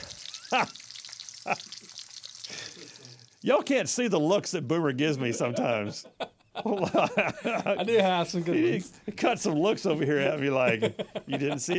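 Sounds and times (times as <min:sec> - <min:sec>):
home fries sizzling in a frying pan: 0:00.0 - 0:03.9
speech: 0:00.5 - 0:00.8, 0:01.5 - 0:11.7
laughter: 0:05.1 - 0:11.7.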